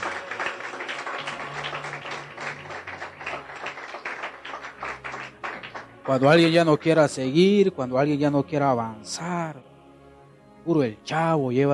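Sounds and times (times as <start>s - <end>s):
crowd clapping: 0.0s - 7.2s
speech: 6.1s - 9.7s, 10.6s - 11.7s.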